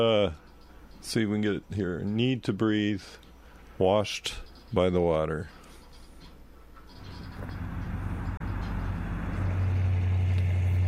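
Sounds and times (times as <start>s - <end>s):
speech: 0.0s - 5.6s
old car driving around: 7.0s - 10.8s.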